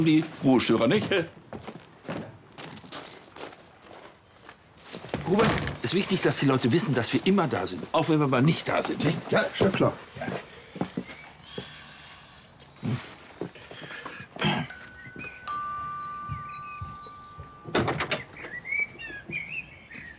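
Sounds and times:
speech: 0:00.0 - 0:01.8, 0:05.3 - 0:10.5
doorbell ringing: 0:14.4 - 0:18.5.

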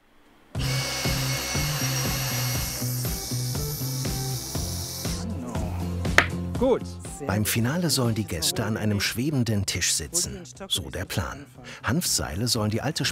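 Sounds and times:
saw cutting wood: 0:00.6 - 0:05.3
speech: 0:06.6 - 0:13.1.

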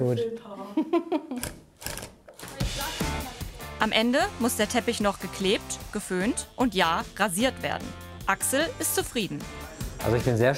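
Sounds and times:
speech: 0:00.0 - 0:01.6, 0:03.8 - 0:10.5
tool buzzing and rattling making the final stitch of a handmade rug: 0:01.4 - 0:02.8.

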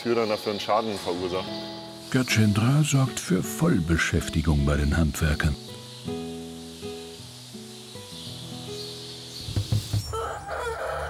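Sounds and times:
speech: 0:00.0 - 0:06.3
game chickens crowing: 0:09.8 - 0:11.0.

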